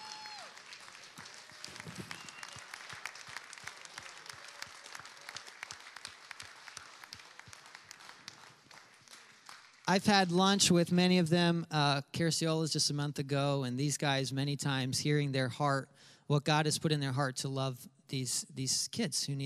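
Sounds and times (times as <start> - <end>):
audience standing applause: 0.0 - 10.4
speech: 9.9 - 19.4.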